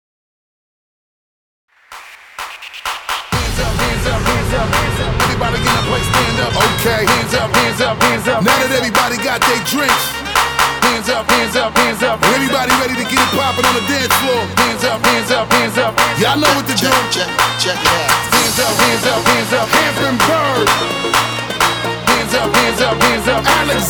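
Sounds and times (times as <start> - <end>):
bootleg dance music track at 128 BPM: 1.7 - 23.8.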